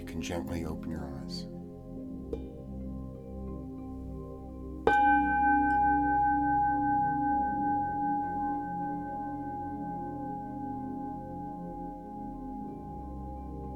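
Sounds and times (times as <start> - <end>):
speech: 0.2 - 1.6
meditation bell: 4.9 - 13.7.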